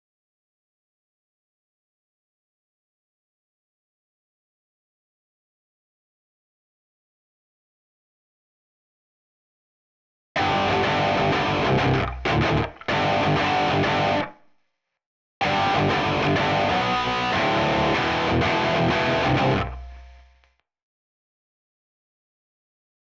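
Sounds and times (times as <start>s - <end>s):
backing guitar: 10.4s - 14.3s, 15.4s - 20.3s.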